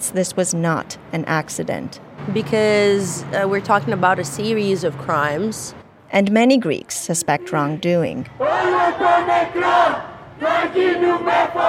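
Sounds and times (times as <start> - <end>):
speech: 0.1 - 11.6
large protest crowd shouting and chanting: 8.3 - 11.6.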